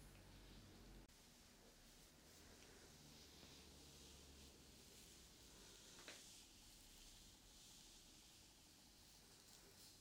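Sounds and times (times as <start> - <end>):
hair brushed and scalp massaged with bristles: 0.2 - 9.9.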